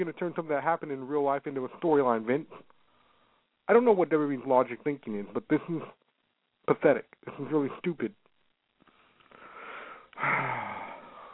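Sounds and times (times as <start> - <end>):
speech: 0.0 - 2.8, 3.7 - 6.0, 6.7 - 8.2, 10.2 - 10.8
sharp noisy inhale after a long rant: 9.3 - 11.3.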